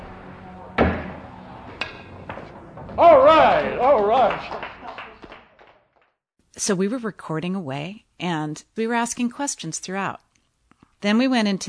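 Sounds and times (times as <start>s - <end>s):
pool balls clacking: 0.1s - 4.7s
pool cue striking a ball in a one-handed jacked-up cut shot: 0.7s - 4.0s
speech: 3.0s - 4.6s, 6.6s - 10.2s, 11.0s - 11.6s.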